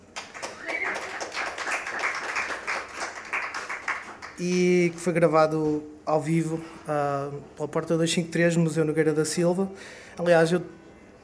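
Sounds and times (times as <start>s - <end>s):
audience applause: 0.0s - 4.7s
speech: 4.4s - 11.2s.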